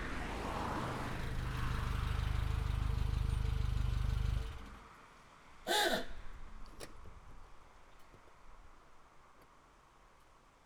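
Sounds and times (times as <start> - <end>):
Saab V4 car engine: 0.2 - 6.9.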